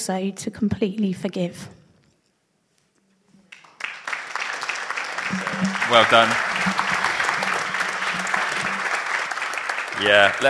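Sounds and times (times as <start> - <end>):
speech: 0.0 - 1.8, 5.3 - 6.8, 10.0 - 10.4
audience applause: 3.5 - 10.4.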